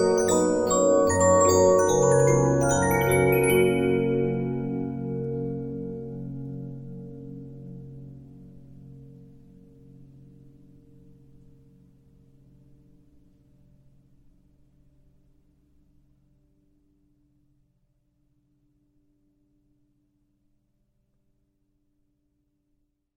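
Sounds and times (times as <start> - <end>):
Regina 15-inch disc music box: 0.0 - 5.4.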